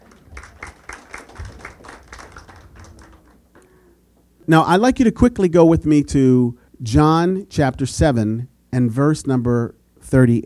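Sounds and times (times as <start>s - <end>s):
audience applause: 0.0s - 3.5s
speech: 4.5s - 10.4s.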